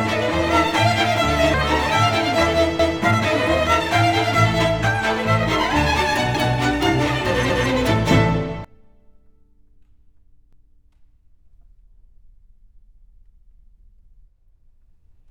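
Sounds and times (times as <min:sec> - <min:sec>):
cello with strings: 0:00.0 - 0:09.0.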